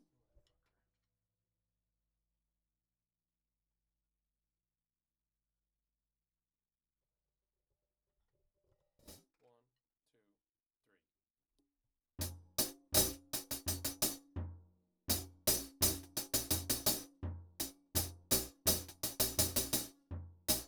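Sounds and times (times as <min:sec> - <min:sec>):
hi-hat: 0:12.3 - 0:14.2, 0:15.1 - 0:20.6.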